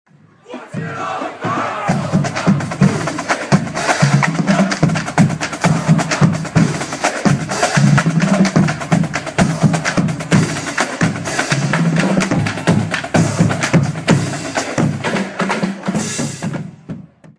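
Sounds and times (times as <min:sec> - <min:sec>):
marching band marching toward a stadium: 0:00.6 - 0:17.3.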